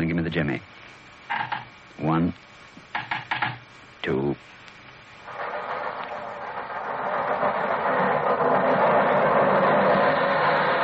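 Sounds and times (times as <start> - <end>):
speech: 0.0 - 2.5, 4.0 - 4.6
train wheels clattering: 5.3 - 10.8
underground train rumbling past: 5.3 - 10.8.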